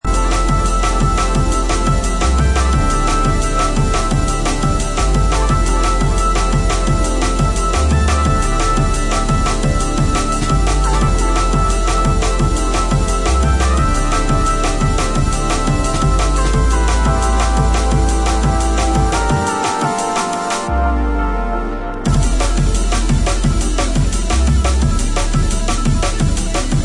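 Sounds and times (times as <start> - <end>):
drum and bass music: 0.0 - 26.8.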